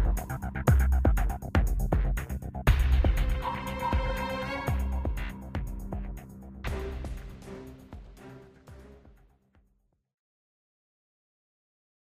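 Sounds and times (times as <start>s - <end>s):
tension music: 0.0s - 9.4s.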